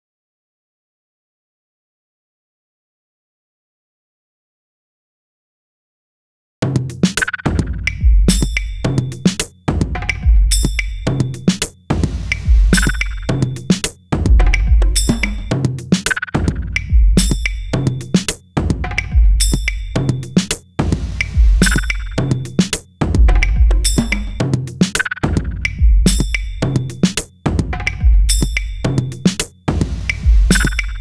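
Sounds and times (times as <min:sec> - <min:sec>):
club dance drums: 0:06.6 - 0:30.9.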